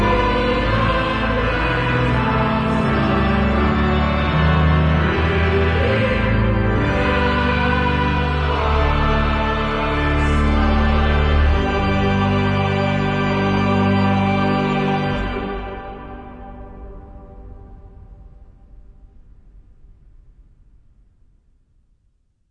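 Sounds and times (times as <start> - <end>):
cathedral choir singing: 0.0 - 17.3.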